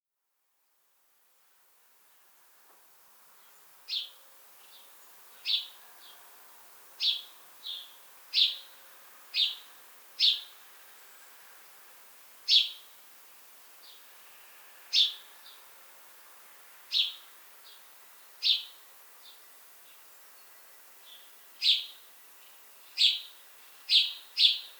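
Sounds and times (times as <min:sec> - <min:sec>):
faint hiss: 0:00.2 - 0:24.7
house sparrow chirping: 0:03.9 - 0:06.2, 0:07.0 - 0:08.6, 0:09.4 - 0:10.5, 0:12.5 - 0:12.8, 0:14.9 - 0:15.2, 0:16.9 - 0:17.8, 0:18.4 - 0:19.4, 0:21.0 - 0:24.7.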